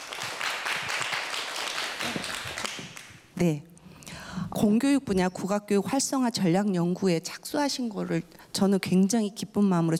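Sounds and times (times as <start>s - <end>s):
audience applause: 0.0s - 3.1s
speech: 3.4s - 3.7s, 4.4s - 9.9s.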